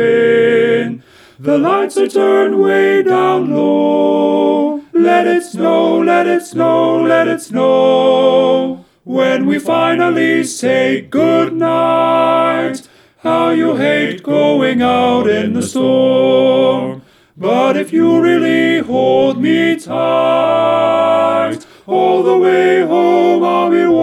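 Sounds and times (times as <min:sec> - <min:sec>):
tenor voice: 0:00.0 - 0:08.0, 0:09.1 - 0:24.0.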